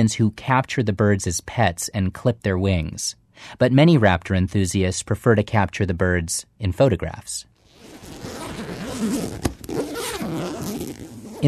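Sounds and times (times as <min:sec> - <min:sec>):
speech: 0:00.0 - 0:08.4
camera cases unzipping: 0:07.7 - 0:11.4.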